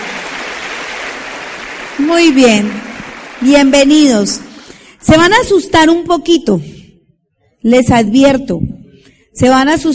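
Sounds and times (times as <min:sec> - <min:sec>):
crowd applause of welcome: 0:00.0 - 0:04.7
speech: 0:02.0 - 0:04.4, 0:05.0 - 0:06.8, 0:07.6 - 0:08.8, 0:09.4 - 0:09.9.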